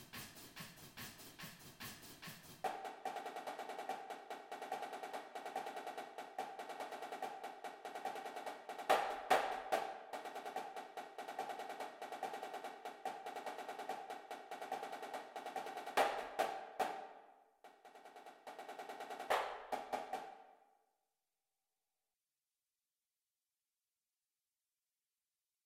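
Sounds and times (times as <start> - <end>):
snare drum: 0.0 - 20.5.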